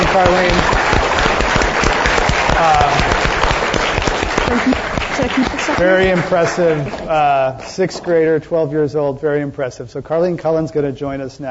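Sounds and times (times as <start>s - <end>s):
audience applause: 0.0s - 7.5s
speech: 0.2s - 0.9s, 4.5s - 11.5s.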